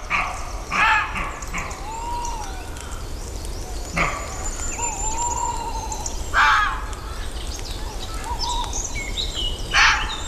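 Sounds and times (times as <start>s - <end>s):
fox barking: 0.0s - 1.8s
low hiss: 0.0s - 10.2s
woodland birdsong in a beech forest: 0.0s - 10.2s.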